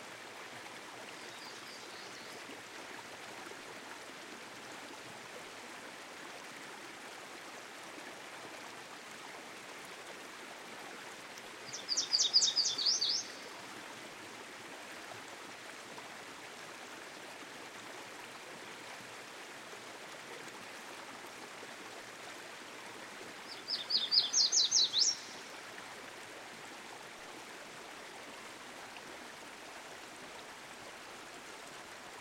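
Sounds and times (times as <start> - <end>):
stream flowing: 0.0 - 32.1
Yellow Warbler singing: 11.7 - 13.4, 23.5 - 25.3.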